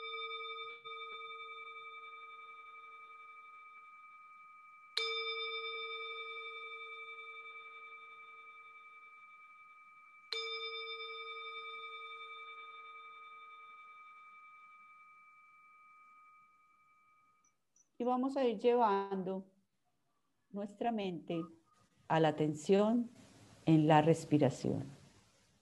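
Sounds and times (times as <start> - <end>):
singing bowl ringing: 0.0 - 17.6
speech: 18.0 - 19.5, 20.5 - 25.0.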